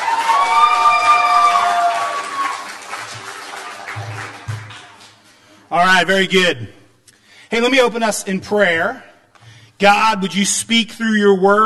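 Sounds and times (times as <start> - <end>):
high whoops and cheers: 0.0 - 3.0
crowd of campers and staff applauding: 0.0 - 5.6
speech: 5.8 - 6.8, 7.5 - 9.1, 9.8 - 11.6.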